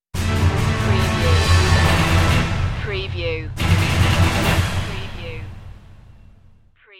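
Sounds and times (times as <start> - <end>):
music sting: 0.2 - 6.6.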